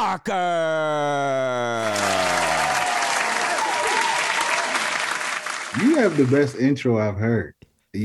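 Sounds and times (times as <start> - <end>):
speech: 0.2 - 2.8, 5.9 - 8.0
audience applause greeting a podcast guest: 1.8 - 6.8.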